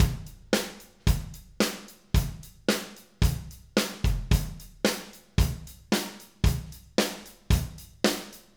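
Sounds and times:
live acoustic drums playing: 0.0s - 8.5s.

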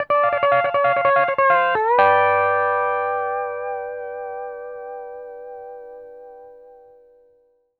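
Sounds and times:
country music loop at 140 BPM: 0.0s - 3.8s.

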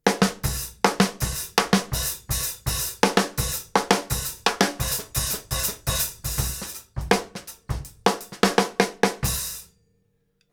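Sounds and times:
live snare drum: 0.1s - 9.6s
kick drum: 0.2s - 8.1s.

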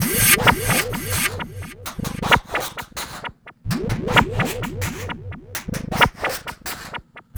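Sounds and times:
energetic trance sound effect: 0.0s - 2.3s, 3.7s - 7.3s.

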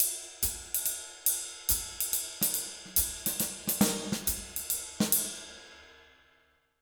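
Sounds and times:
jazz Latin drum loops: 1.7s - 5.4s.

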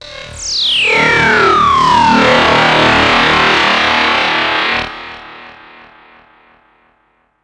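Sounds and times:
drum and bass effect: 0.7s - 5.5s.

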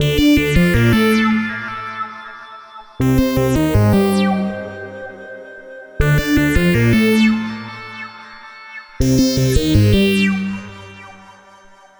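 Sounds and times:
virtual analog synthesizer keyboard: 0.0s - 11.5s.

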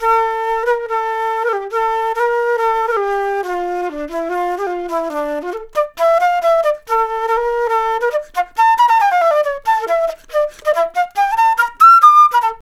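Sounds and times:
jazz flute solo: 0.0s - 12.6s.

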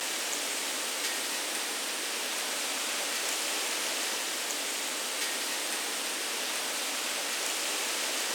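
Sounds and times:
midnight rain: 0.0s - 8.3s.

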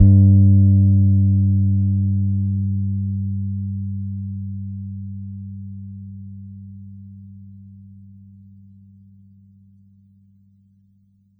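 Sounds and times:
soft Pedulla Thunderbass bass guitar note D sharp G3: 0.0s - 7.9s.

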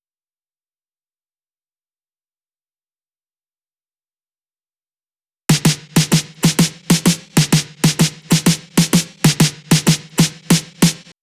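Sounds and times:
snare drum loop: 5.5s - 11.2s.

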